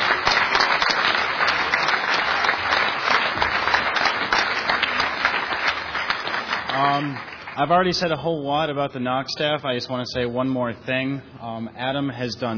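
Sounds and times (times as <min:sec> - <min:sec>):
audience applause: 0:00.0 - 0:07.8
speech: 0:06.9 - 0:12.5.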